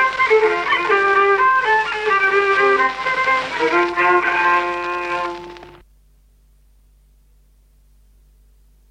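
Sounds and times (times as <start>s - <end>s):
violin playing folk polka in Kuusalu: 0.0s - 5.8s.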